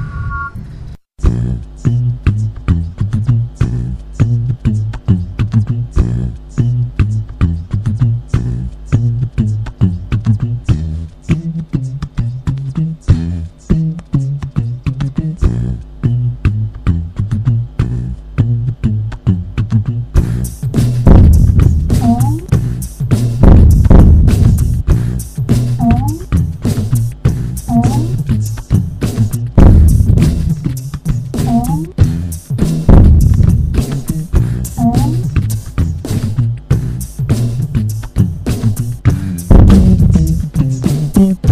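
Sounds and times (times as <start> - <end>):
vocal beat: 1.2 - 41.4.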